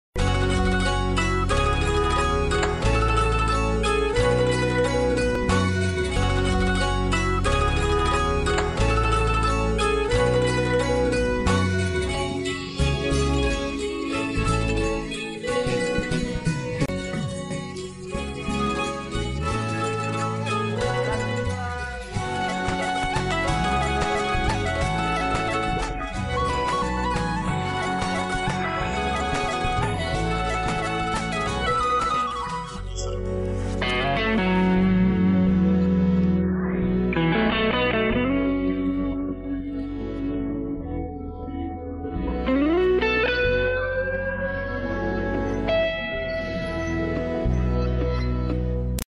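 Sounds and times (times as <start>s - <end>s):
instrumental love background film score without vocals: 0.2s - 49.0s.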